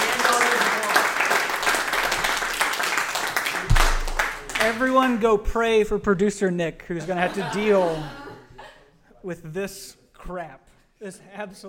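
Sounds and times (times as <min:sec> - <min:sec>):
audience applause: 0:00.0 - 0:04.8
speech: 0:04.6 - 0:08.2, 0:09.2 - 0:11.6
laughter: 0:07.0 - 0:08.9.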